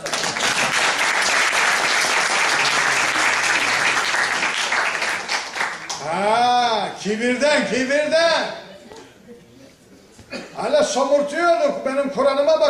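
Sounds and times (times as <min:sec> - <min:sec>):
crowd applauding at a religious lecture on Quranic commentary: 0:00.0 - 0:06.2
speech: 0:07.0 - 0:08.6, 0:10.6 - 0:12.6.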